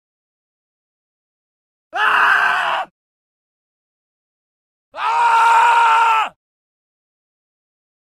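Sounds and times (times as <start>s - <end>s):
man screaming: 2.0s - 2.9s, 5.0s - 6.4s.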